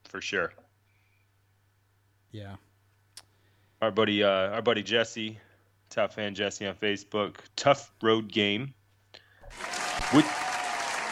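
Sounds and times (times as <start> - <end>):
speech: 0.1 - 0.6, 2.3 - 2.7, 3.8 - 8.8, 9.5 - 10.4
applause: 9.5 - 11.0.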